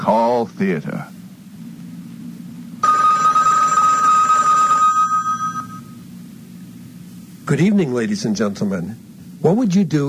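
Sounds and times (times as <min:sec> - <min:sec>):
speech: 0:00.0 - 0:01.2, 0:07.5 - 0:10.0
bell ringing: 0:02.8 - 0:06.0.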